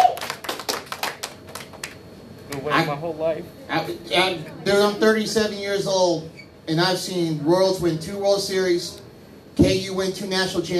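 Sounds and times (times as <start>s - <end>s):
hand clapping: 0.0s - 2.7s
speech: 2.6s - 9.0s, 9.6s - 10.7s.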